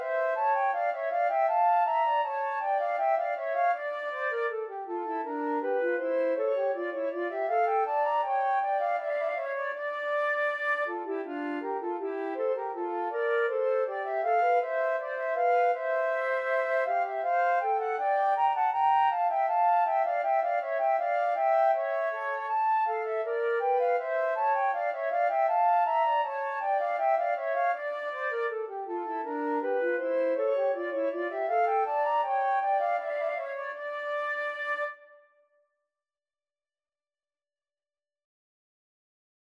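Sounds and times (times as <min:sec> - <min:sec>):
two flutes playing a bourree: 0:00.0 - 0:35.3.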